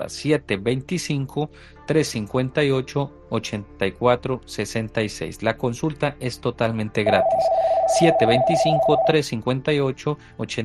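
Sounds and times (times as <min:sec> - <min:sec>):
speech: 0:00.0 - 0:10.6
electronic phone-line tone of an incoming call on a call-in show: 0:07.0 - 0:09.2.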